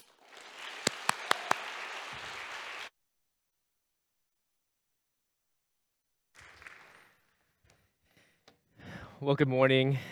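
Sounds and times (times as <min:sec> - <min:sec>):
church congregation applauding to welcome a guest pastor: 0:00.0 - 0:02.9, 0:06.4 - 0:07.4
speech: 0:09.2 - 0:10.0.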